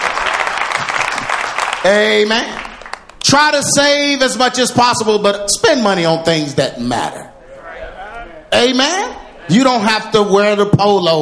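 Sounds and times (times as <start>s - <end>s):
hand clapping: 0.0s - 3.4s
speech: 1.8s - 2.6s, 3.2s - 7.2s, 8.5s - 11.2s.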